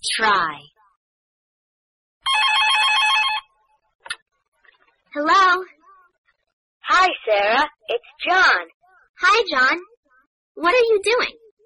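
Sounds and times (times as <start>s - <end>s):
speech: 0.0s - 0.7s, 5.2s - 5.8s, 6.9s - 9.9s, 10.6s - 11.4s
telephone ringing: 2.2s - 3.6s.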